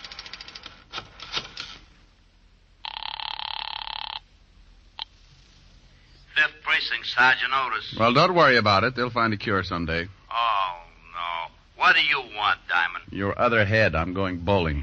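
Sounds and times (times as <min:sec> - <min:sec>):
telephone ringing: 0:02.8 - 0:04.3
speech: 0:06.9 - 0:10.4, 0:11.9 - 0:14.8.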